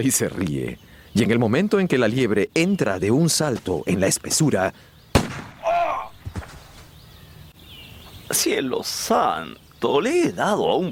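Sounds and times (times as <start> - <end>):
speech: 0.0 - 5.4, 8.3 - 10.9
shotgun fired during a hunt in an audio drama: 5.1 - 5.8.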